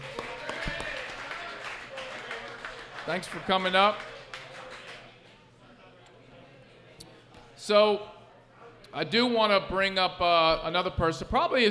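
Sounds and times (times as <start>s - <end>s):
audience applause: 0.0s - 5.1s
speech: 3.1s - 4.1s, 7.7s - 8.2s, 9.0s - 11.6s.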